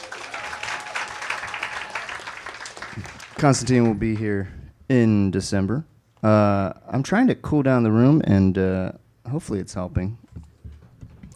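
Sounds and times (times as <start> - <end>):
crowd applause: 0.0 - 4.2
speech: 3.0 - 10.2.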